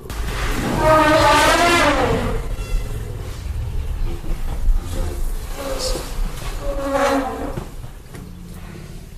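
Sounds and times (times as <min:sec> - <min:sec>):
Warsaw zoo elephant trumpeting: 0:00.6 - 0:03.6, 0:04.8 - 0:07.6.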